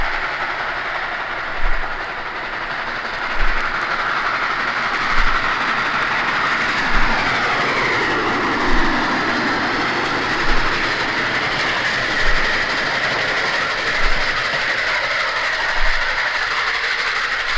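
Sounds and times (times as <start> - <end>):
K4s steam locomotive sounds: 0.0 - 17.5.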